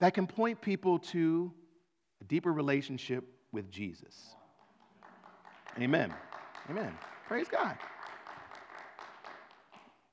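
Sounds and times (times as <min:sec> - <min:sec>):
speech: 0:00.0 - 0:01.6, 0:02.2 - 0:04.4, 0:05.8 - 0:07.9
one person clapping during a church service: 0:04.3 - 0:10.1.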